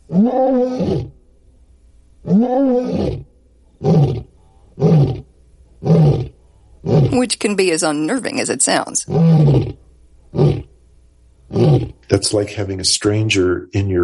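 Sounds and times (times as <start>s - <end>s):
lion roaring: 0.0s - 1.2s, 2.2s - 7.2s, 9.1s - 10.7s, 11.5s - 12.0s
speech: 0.2s - 1.1s, 2.3s - 3.2s, 7.2s - 10.6s, 12.1s - 14.0s.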